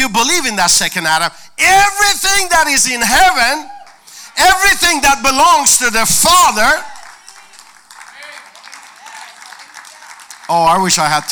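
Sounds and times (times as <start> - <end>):
speech: 0.0 - 3.8, 4.4 - 6.9, 10.5 - 11.3
faint voices or cheers: 3.5 - 4.1, 6.6 - 10.3
audience clapping hands: 6.5 - 11.3.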